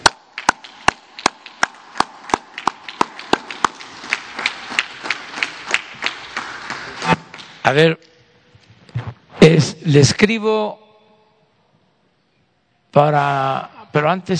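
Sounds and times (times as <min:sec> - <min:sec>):
audience applause: 0:00.0 - 0:07.6
speech: 0:07.7 - 0:08.2, 0:09.5 - 0:10.8, 0:12.9 - 0:14.3.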